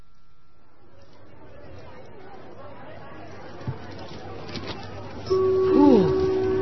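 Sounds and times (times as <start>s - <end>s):
crowd chatter in a busy department store: 0.0s - 6.5s
sustained tone: 5.3s - 6.5s.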